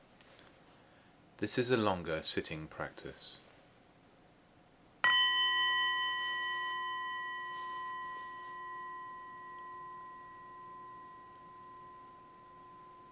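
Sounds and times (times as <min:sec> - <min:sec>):
speech: 0:01.4 - 0:03.4
meditation bell ringing: 0:05.0 - 0:13.0.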